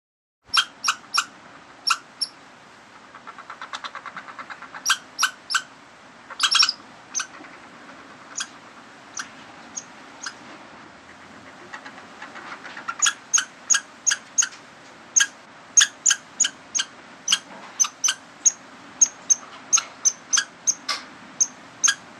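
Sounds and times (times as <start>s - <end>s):
rodent squeaks: 0.5s - 2.4s, 3.0s - 5.7s, 6.3s - 10.4s, 11.1s - 14.6s, 15.2s - 22.1s.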